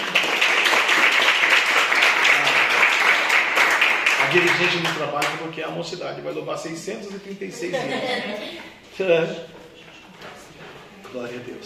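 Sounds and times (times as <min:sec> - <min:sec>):
audience clapping: 0:00.0 - 0:05.5
speech: 0:04.3 - 0:09.6, 0:11.1 - 0:11.6
laughter: 0:07.6 - 0:08.7.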